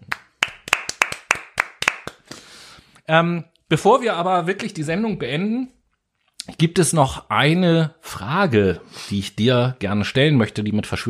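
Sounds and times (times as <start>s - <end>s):
hands clapping: 0.0s - 2.4s
speech: 3.1s - 5.8s, 6.4s - 11.0s.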